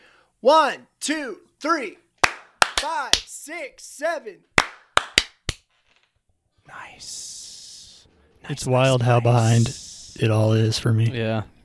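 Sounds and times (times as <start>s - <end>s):
speech: 0.4s - 2.0s, 2.8s - 4.5s, 6.7s - 7.4s, 8.4s - 11.5s
hand clap for recording sync: 2.2s - 3.3s, 4.6s - 5.7s.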